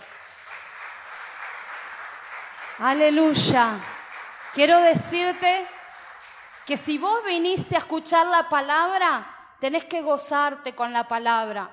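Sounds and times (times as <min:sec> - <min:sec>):
audience applause: 0:00.0 - 0:07.0
speech: 0:02.8 - 0:03.9, 0:04.5 - 0:05.7, 0:06.7 - 0:11.7.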